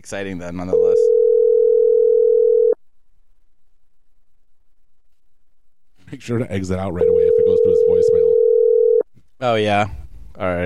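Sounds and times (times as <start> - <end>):
speech: 0.0 - 1.2, 6.1 - 8.3, 9.4 - 10.6
telephone ringback tone on an outgoing call: 0.8 - 2.8, 7.0 - 9.0.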